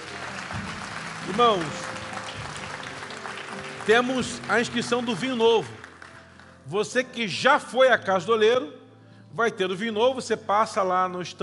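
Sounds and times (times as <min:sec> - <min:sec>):
audience applauding loudly: 0:00.0 - 0:06.7
speech: 0:01.3 - 0:02.0, 0:03.9 - 0:05.8, 0:06.6 - 0:11.4.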